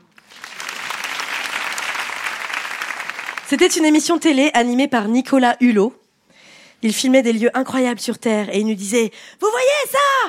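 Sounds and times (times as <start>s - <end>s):
audience applause: 0.0s - 3.7s
speech: 3.5s - 6.0s, 6.8s - 10.2s.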